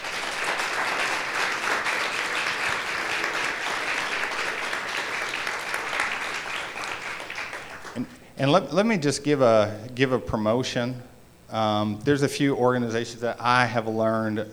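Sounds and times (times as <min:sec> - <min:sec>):
audience applause: 0:00.0 - 0:08.2
speech: 0:08.0 - 0:14.5.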